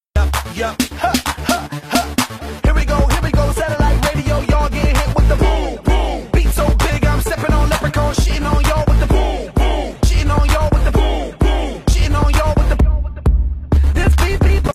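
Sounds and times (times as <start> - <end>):
TikTok remix music: 0.0 - 14.7.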